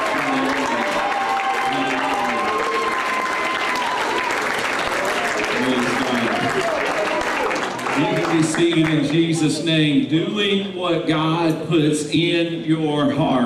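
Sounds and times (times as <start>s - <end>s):
audience clapping: 0.0s - 9.4s
speech: 8.6s - 13.4s.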